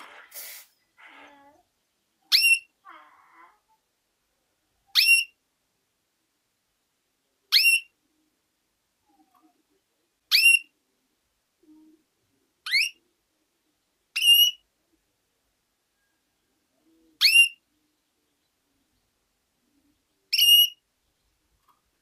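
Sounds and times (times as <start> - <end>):
female canary calls: 2.3 - 3.7, 4.9 - 5.4, 7.5 - 8.0, 10.3 - 10.7, 12.6 - 13.0, 17.2 - 17.6, 20.3 - 20.8.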